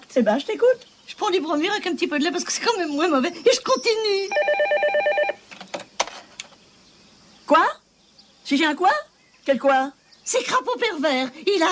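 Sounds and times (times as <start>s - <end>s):
speech: 0.2s - 5.2s, 7.5s - 7.8s, 8.5s - 11.7s
telephone ringing: 4.3s - 5.4s.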